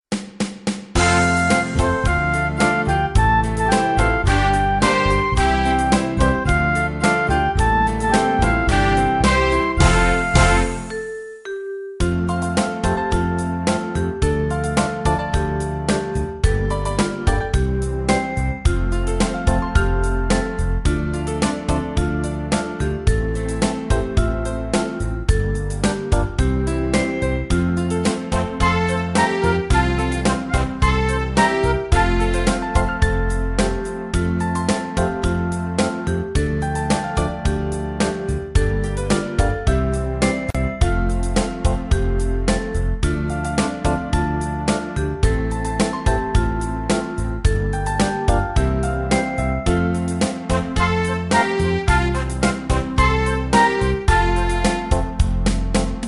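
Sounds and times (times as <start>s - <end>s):
music beat: 0.1s - 11.1s, 12.0s - 56.0s.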